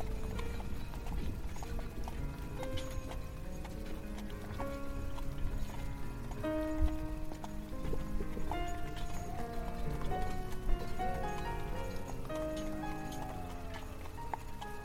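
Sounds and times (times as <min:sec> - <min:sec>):
classical music played from faraway: 0:00.0 - 0:14.8
horse hooves clip-clopping pulling a carriage: 0:00.0 - 0:14.8
horse-drawn carriage rumble on ride through the woods: 0:00.0 - 0:14.8.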